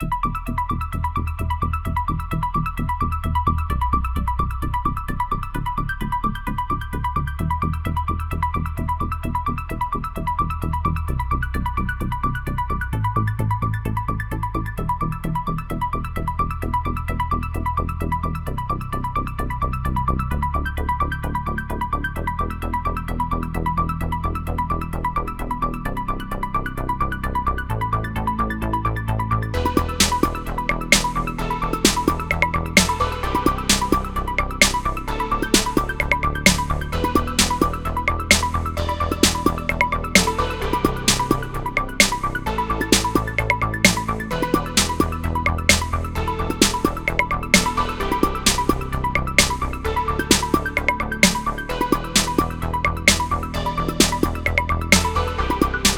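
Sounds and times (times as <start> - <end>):
music at 130 BPM: 0.0 - 55.9.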